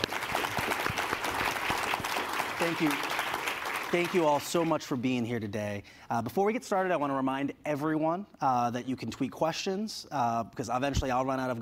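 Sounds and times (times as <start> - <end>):
crowd applause: 0.0 - 4.7
speech: 2.6 - 3.2, 3.9 - 11.6.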